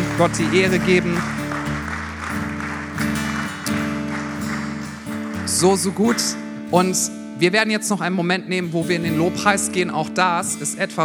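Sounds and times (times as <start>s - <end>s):
audience applause: 0.0s - 6.4s
speech: 0.2s - 1.4s, 5.6s - 11.0s.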